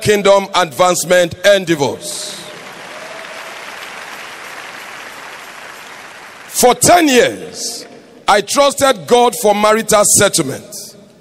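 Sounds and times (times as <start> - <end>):
speech: 0.0 - 2.3, 6.6 - 10.8
audience clapping: 2.3 - 8.0.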